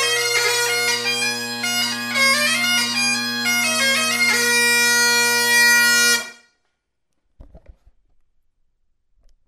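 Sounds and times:
bagpipes playing jigs: 0.0s - 6.6s.

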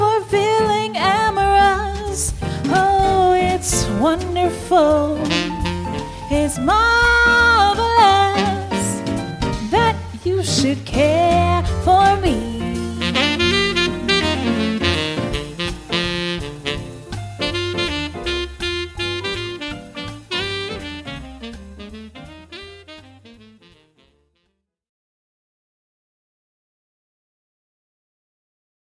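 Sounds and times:
female vocalist singing with swing band: 0.0s - 15.0s
swing band combo playing: 0.1s - 24.2s.

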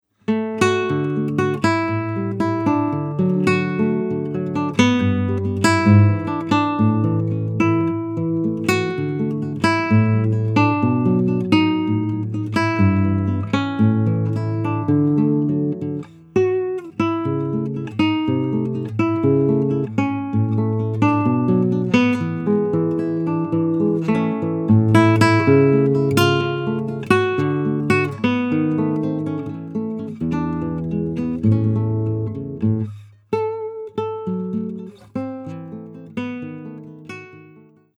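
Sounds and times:
guitar study in D: 0.0s - 37.9s.

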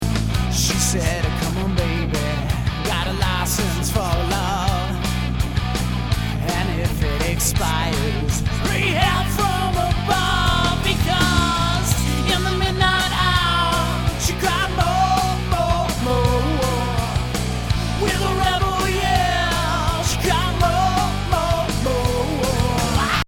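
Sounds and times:
live cover band: 0.0s - 23.2s.

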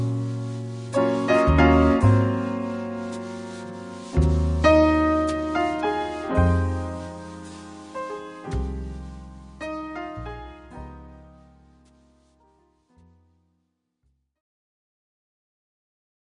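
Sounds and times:
piano trio: 0.0s - 13.3s.

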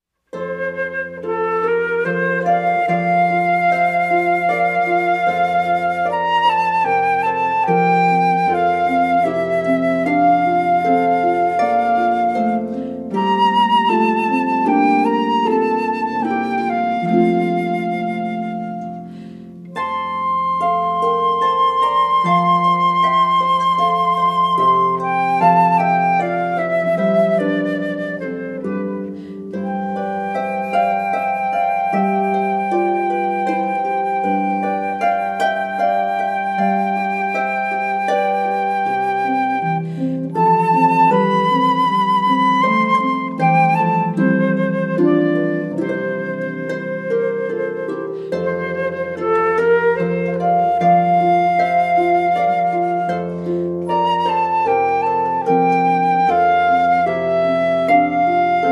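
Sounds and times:
harp: 0.1s - 58.7s
flute: 0.3s - 58.7s.

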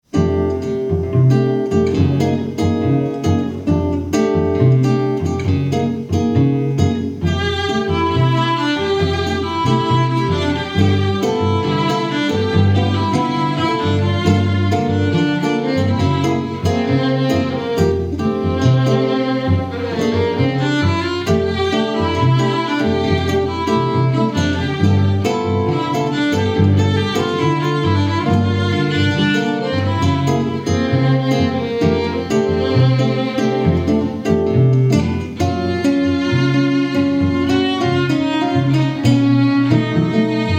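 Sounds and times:
string trio playing: 0.0s - 40.5s.

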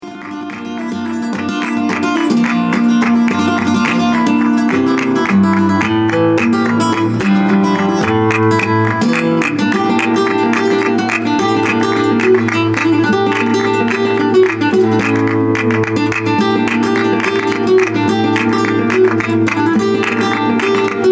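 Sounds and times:
flamenco guitar playing bulería: 0.0s - 21.1s.

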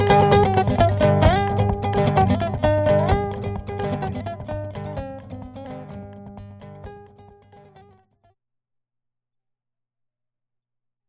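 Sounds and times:
solo fingerstyle acoustic guitar: 0.0s - 8.0s.

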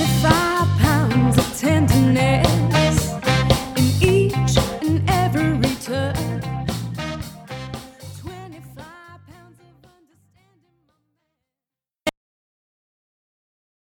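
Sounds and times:
soul orchestra music: 0.0s - 9.0s.

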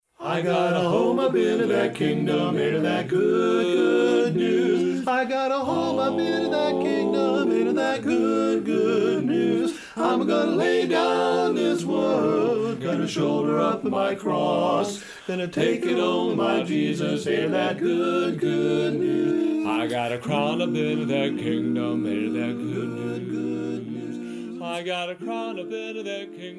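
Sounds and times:
barbershop quartet singing: 0.2s - 26.5s.

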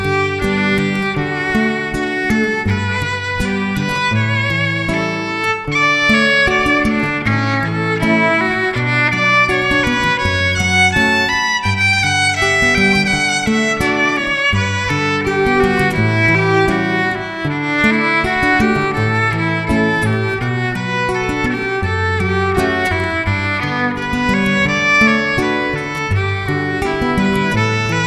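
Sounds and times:
acoustic guitar in an acoustic duo: 0.0s - 28.0s
violin in an acoustic duo: 0.0s - 28.0s.

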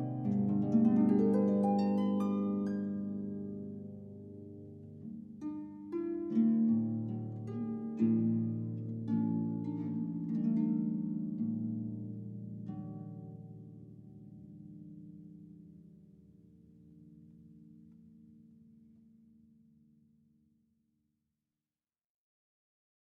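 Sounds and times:
harp playing traditional Irish music: 0.0s - 15.7s.

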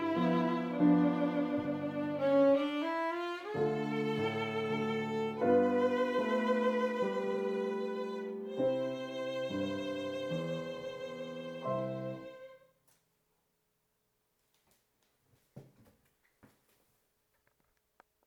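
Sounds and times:
classical duo playing: 0.0s - 12.6s.

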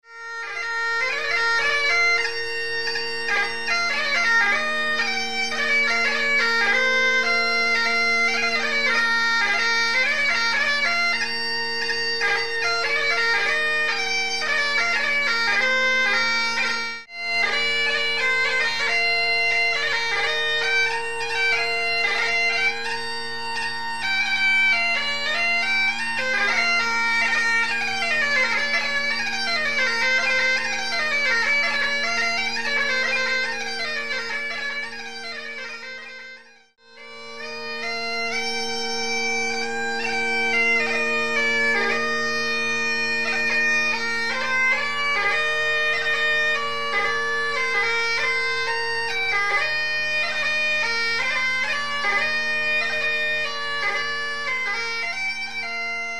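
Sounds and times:
bagpipes: 0.0s - 56.1s.

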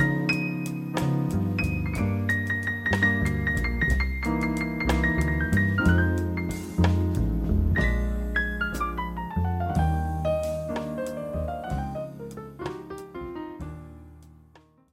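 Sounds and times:
jazz band quartet playing: 0.0s - 13.4s.

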